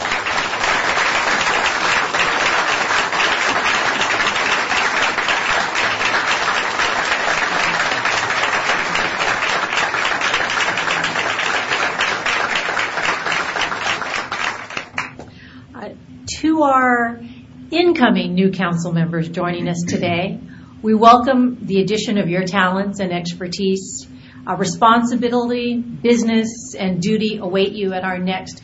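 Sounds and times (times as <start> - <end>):
audience applause: 0.0 - 15.2
speech: 18.0 - 28.6.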